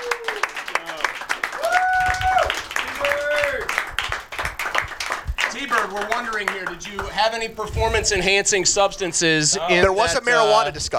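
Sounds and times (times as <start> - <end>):
round of applause for a winner: 0.0 - 7.4
speech: 5.9 - 10.9.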